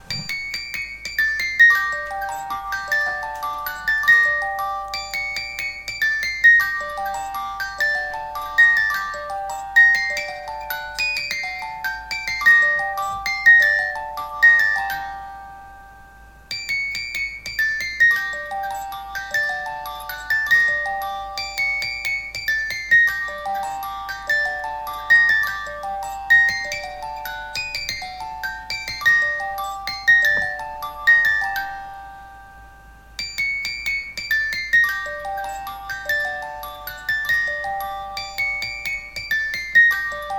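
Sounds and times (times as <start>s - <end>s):
music box: 0.0s - 40.3s.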